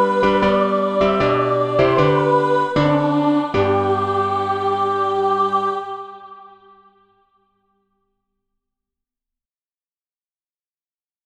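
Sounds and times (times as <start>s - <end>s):
alto voice singing practice music: 0.0s - 7.3s.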